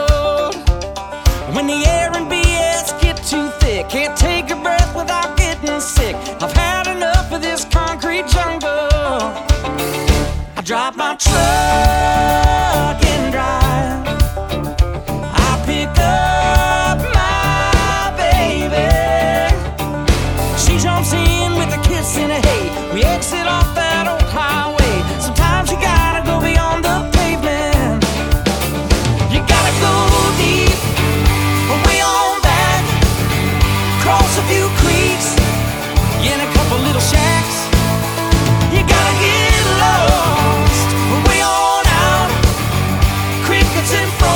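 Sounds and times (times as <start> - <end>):
banjo: 0.0 - 44.3.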